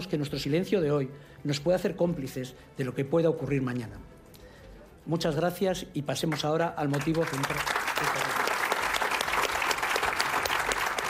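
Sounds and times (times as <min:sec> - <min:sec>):
speech: 0:00.1 - 0:04.2, 0:05.0 - 0:08.3
audience applause: 0:06.9 - 0:11.0.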